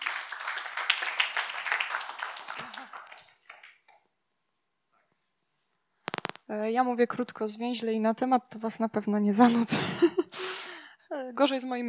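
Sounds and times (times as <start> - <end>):
audience applause: 0.0 - 3.6
speech: 6.5 - 10.3, 11.2 - 11.8.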